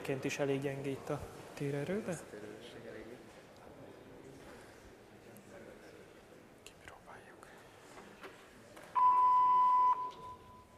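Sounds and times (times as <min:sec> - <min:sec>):
speech: 0:00.0 - 0:02.9
voicemail beep tone: 0:09.0 - 0:10.7.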